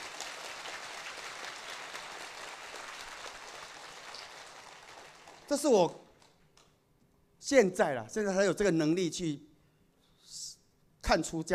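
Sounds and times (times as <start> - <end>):
audience applause: 0.0 - 5.7
speech: 5.5 - 6.0, 7.5 - 9.5, 11.1 - 11.5.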